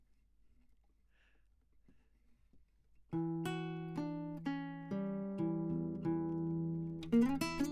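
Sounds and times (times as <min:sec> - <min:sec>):
classical guitar: 0:03.1 - 0:07.7.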